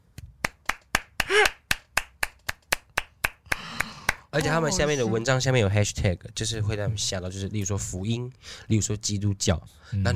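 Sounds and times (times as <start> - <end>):
hand claps: 0.2 - 4.4
voiced cry: 1.2 - 1.6
speech: 4.4 - 10.1.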